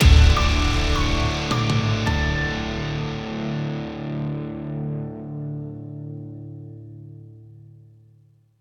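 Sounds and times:
boss track jingle: 0.0s - 4.0s.

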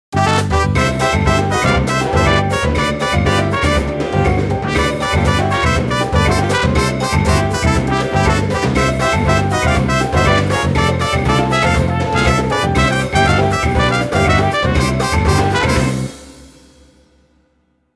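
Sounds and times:
pachinko fanfare: 0.1s - 16.2s.

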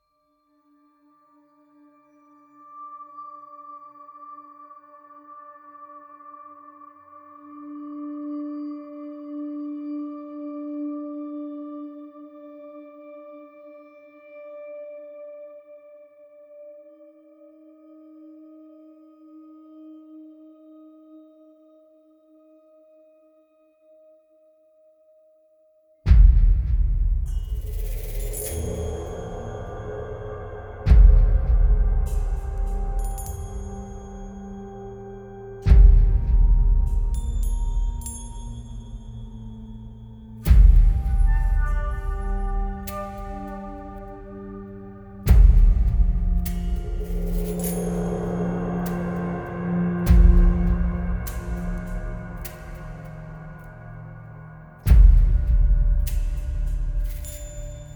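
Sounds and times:
intro music: 26.1s - 57.9s.

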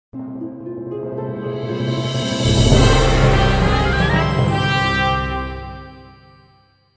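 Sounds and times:
jingle: 1.4s - 6.9s.

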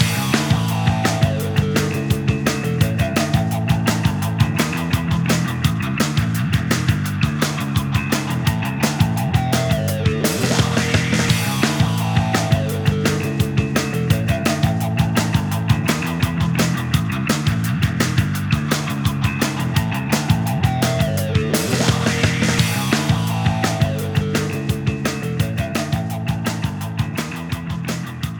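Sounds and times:
band jam session: 0.0s - 28.2s.

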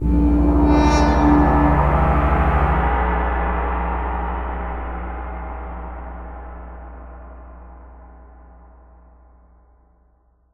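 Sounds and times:
tension music ending: 0.0s - 8.0s.

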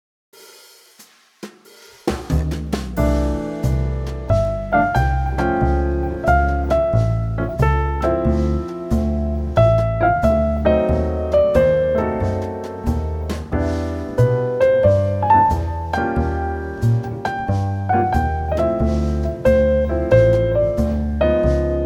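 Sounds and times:
elegant jazz music: 2.1s - 21.8s.

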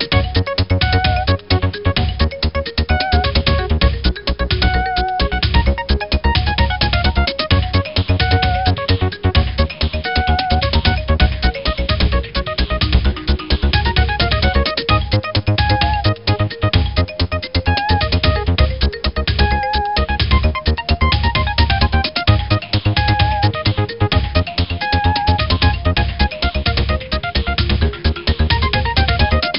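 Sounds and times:
jazz music: 0.1s - 29.5s.

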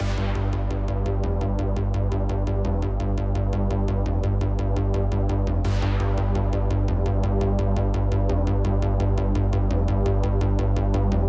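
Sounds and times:
bass intro: 0.0s - 11.2s.

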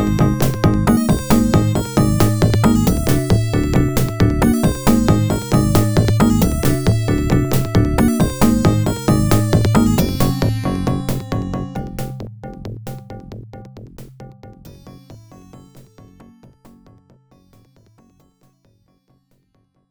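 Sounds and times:
music loop: 0.0s - 12.2s.

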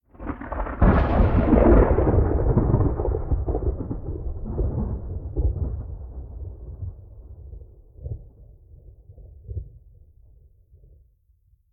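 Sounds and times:
medium exterior thunder: 0.1s - 10.0s.

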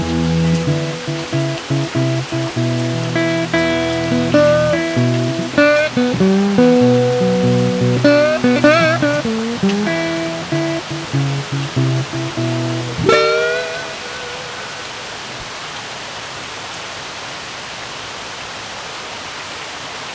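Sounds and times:
blues music: 0.0s - 15.0s
heavy rain: 0.0s - 20.1s.

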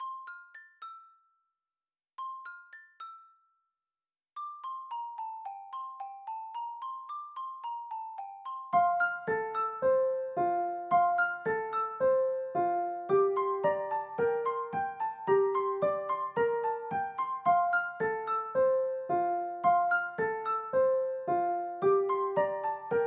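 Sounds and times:
piano music: 8.7s - 23.0s.

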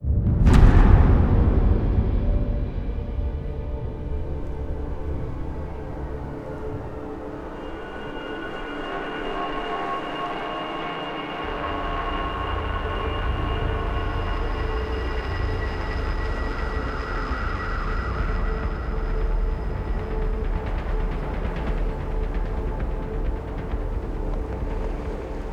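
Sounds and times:
death transition drone: 0.0s - 25.5s.

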